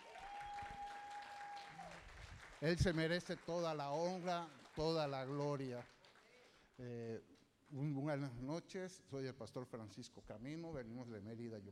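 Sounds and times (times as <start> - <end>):
applause: 0.0 - 8.0
speech: 2.6 - 6.0, 6.8 - 11.7.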